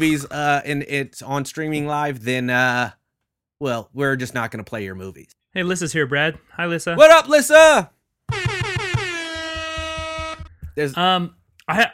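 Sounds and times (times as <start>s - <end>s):
speech: 0.0s - 3.0s, 3.6s - 8.5s, 10.8s - 11.9s
air horn blaring from a soundboard: 8.3s - 10.5s.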